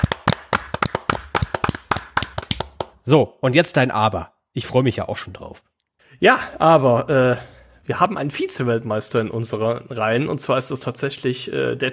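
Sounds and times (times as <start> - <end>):
applause, hands clapping: 0.0 - 3.1
speech: 3.1 - 11.9.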